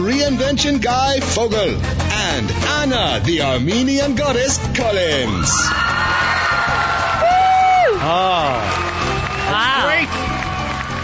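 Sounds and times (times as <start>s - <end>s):
speech: 0.1s - 6.2s, 8.0s - 8.9s
high swooping whoops: 5.3s - 9.4s
studio audience cheering: 5.3s - 11.0s.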